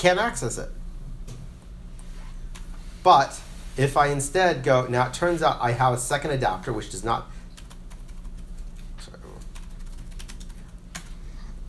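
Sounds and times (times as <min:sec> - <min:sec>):
speech: 0:00.0 - 0:00.8, 0:03.0 - 0:07.4
typing on a QWERTY computer keyboard while working in a virtual machine: 0:07.6 - 0:11.1.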